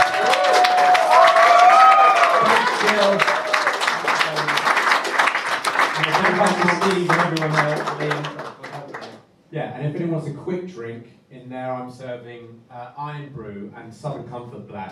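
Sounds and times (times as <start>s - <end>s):
audience applause for the band: 0.0s - 9.2s
speech: 9.8s - 14.8s.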